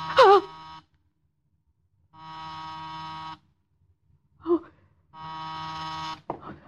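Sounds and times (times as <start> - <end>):
doorbell or intercom buzzer: 0.0 - 0.9, 2.1 - 3.5, 5.2 - 6.3.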